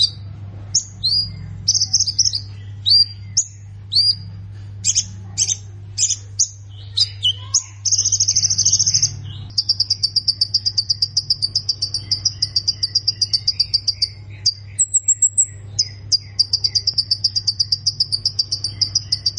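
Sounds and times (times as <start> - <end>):
low electrical hum: 0.0 - 19.3
plain prinia song high chirps: 0.0 - 19.3.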